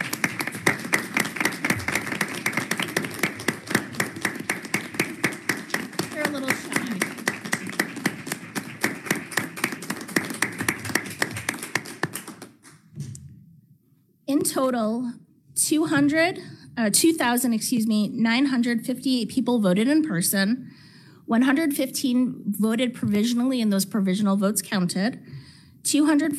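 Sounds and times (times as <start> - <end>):
audience applause: 0.0 - 12.6
speech: 14.6 - 20.7, 21.3 - 26.3.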